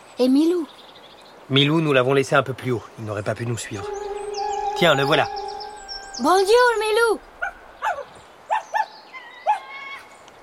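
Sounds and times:
speech: 0.2s - 0.8s, 1.5s - 4.0s, 4.8s - 5.4s, 6.2s - 7.3s
condor cry: 3.8s - 7.3s
thin wavering whistle: 3.8s - 7.3s.

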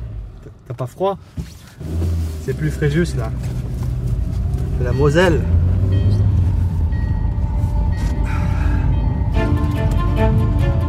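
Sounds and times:
speech: 0.4s - 3.8s, 4.8s - 6.0s
train departing Metz station: 3.8s - 10.8s
faint tonal whine: 5.9s - 10.8s.

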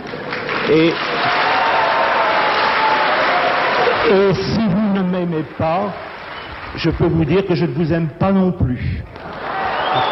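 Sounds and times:
speech: 0.7s - 1.4s, 4.1s - 4.6s, 5.4s - 6.1s, 6.7s - 9.2s
loud shout: 1.2s - 4.3s, 9.4s - 10.1s
crowd roaring: 1.2s - 4.4s, 9.3s - 10.1s
faint whistles: 9.7s - 10.1s.

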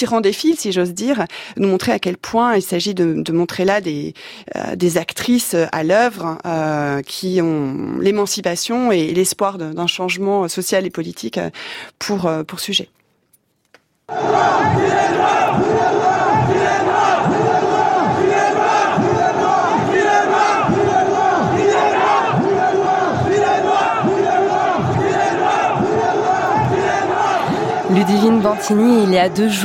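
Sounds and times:
speech: 0.0s - 13.0s, 14.1s - 15.9s, 28.0s - 29.6s
crowd of protesters chanting a slogan in the Panthéon: 14.1s - 29.6s.

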